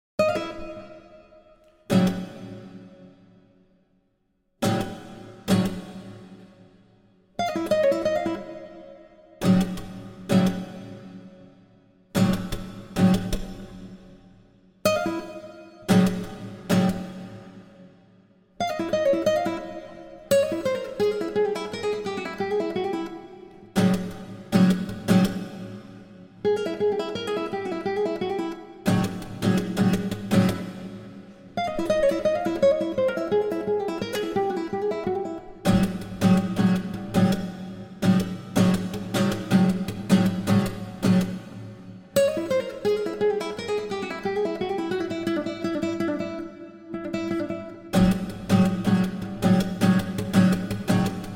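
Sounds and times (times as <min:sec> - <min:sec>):
guitar with live electronics: 0:00.2 - 0:03.6, 0:04.6 - 0:51.3.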